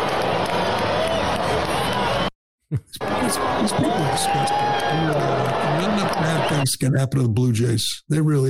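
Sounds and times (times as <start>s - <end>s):
stadium crowd booing: 0.0s - 2.3s, 2.9s - 6.7s
speech: 2.7s - 8.4s.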